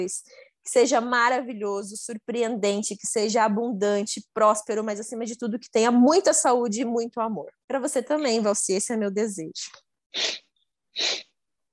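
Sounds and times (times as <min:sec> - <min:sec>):
speech: 0:00.0 - 0:10.4, 0:11.0 - 0:11.3
nose sniffling: 0:10.1 - 0:11.4.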